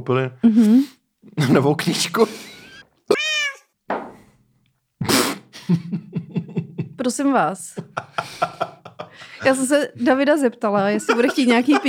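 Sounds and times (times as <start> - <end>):
speech: 0.0 - 2.5, 7.1 - 8.7, 9.4 - 11.8
cat meow sound effect: 3.1 - 3.8
laughter: 5.6 - 7.0, 7.7 - 11.8.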